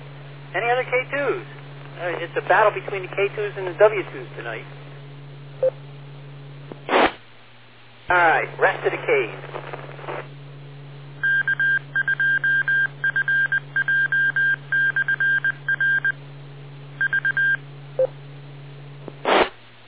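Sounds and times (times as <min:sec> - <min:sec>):
speech: 0:00.5 - 0:04.8, 0:05.6 - 0:05.8, 0:08.1 - 0:09.7
Morse code transmission over radio: 0:11.2 - 0:16.2, 0:17.0 - 0:18.1.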